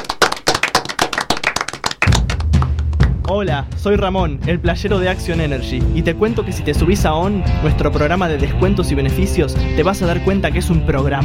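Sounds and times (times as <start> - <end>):
applause: 0.0 - 3.4
speech: 3.3 - 11.2.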